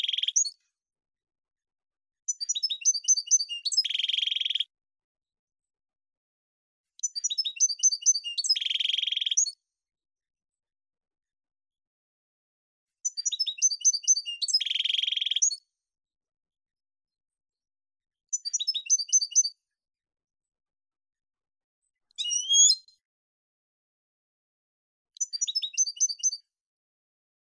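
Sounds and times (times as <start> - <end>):
finch singing: 0.0 - 0.5, 2.3 - 4.6, 7.0 - 9.5, 13.0 - 15.6, 18.3 - 19.5, 22.2 - 22.9, 25.2 - 26.4.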